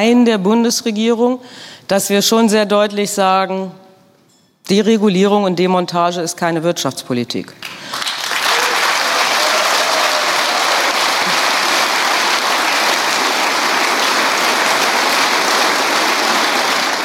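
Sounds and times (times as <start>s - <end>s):
speech: 0.0s - 3.8s, 4.7s - 8.1s
sustained applause from the front row: 7.6s - 17.0s.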